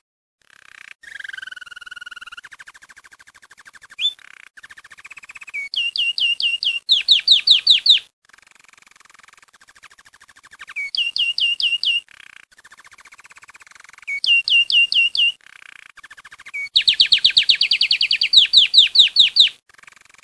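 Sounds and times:
Belgian canary singing: 0:04.0 - 0:04.4, 0:05.2 - 0:08.1, 0:10.6 - 0:12.4, 0:13.4 - 0:19.6.

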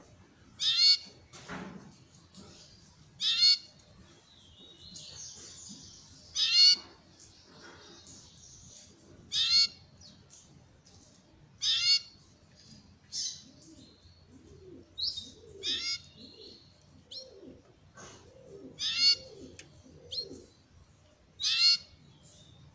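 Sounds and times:
Belgian canary harsh chirps: 0:00.6 - 0:01.1, 0:03.2 - 0:03.7, 0:06.3 - 0:06.9, 0:09.3 - 0:09.8, 0:11.6 - 0:12.2, 0:15.2 - 0:16.2, 0:18.8 - 0:19.4, 0:21.4 - 0:22.0.

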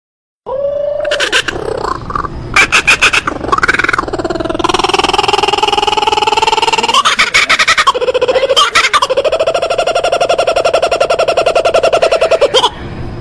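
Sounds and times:
spangled kookaburra cackling: 0:00.5 - 0:12.8.

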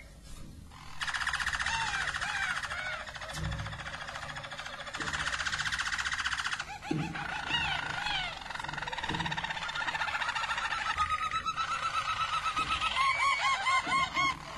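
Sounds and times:
Belgian Harz Roller canary song with rolling tours and trills: 0:00.0 - 0:14.5.

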